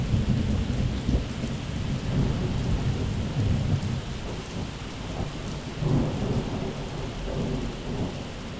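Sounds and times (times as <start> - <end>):
thunder in a summer storm: 0.0 - 8.4.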